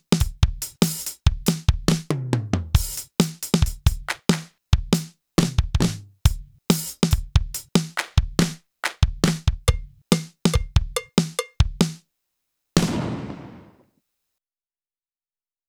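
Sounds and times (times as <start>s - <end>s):
clean dry drum kit: 0.0s - 12.0s.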